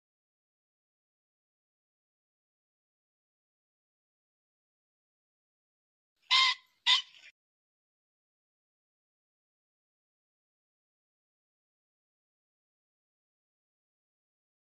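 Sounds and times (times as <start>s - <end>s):
pheasant squawking: 6.3s - 7.3s.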